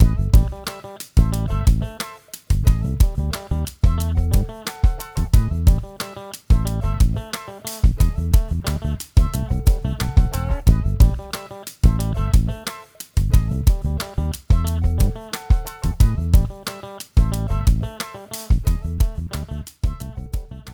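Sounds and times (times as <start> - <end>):
music loop: 0.0 - 20.7.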